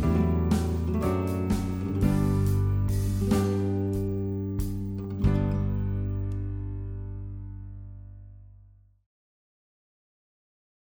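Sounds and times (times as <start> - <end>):
backing music: 0.0 - 6.6.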